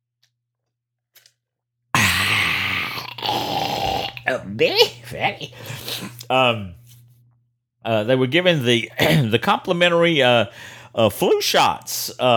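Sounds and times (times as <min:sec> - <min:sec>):
person sipping ice water: 0:02.0 - 0:06.4
speech: 0:04.3 - 0:06.8, 0:07.8 - 0:12.3.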